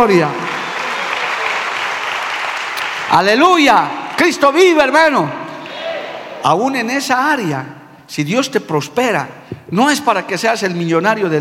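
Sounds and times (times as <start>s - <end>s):
speech: 0.0s - 0.4s, 3.1s - 5.4s, 6.4s - 11.3s
audience applause: 0.0s - 4.4s.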